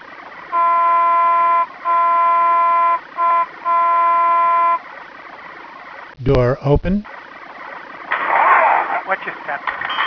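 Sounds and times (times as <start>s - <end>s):
trolley crossing horn blasts: 0.5s - 4.8s
speech: 6.3s - 7.1s, 9.2s - 9.9s.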